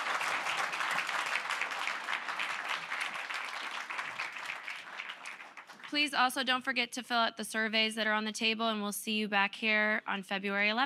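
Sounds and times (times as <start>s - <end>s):
audience applause: 0.0s - 6.0s
speech: 5.9s - 10.8s.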